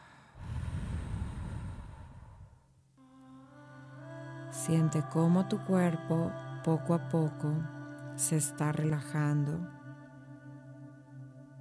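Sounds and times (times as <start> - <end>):
gentle exhale: 0.0 - 2.7
long deep inhale through the nose: 0.0 - 2.7
speech: 4.6 - 9.8.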